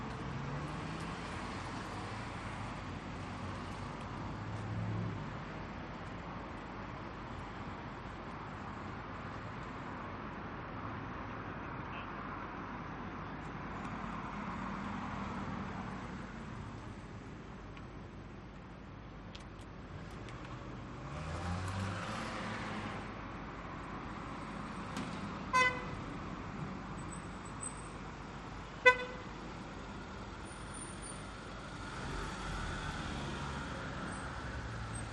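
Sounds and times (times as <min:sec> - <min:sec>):
cars pulling in and away outside a hotel in Doha Qatar at night: 0:00.0 - 0:35.1
car horn honks in Doha Qatar: 0:25.5 - 0:25.9, 0:28.8 - 0:29.3.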